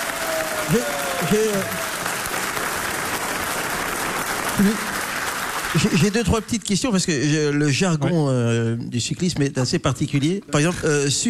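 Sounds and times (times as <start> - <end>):
audience applause for a former cycling champion on a radio show: 0.0 - 6.8
speech: 0.7 - 2.0, 4.6 - 4.9, 5.7 - 11.2.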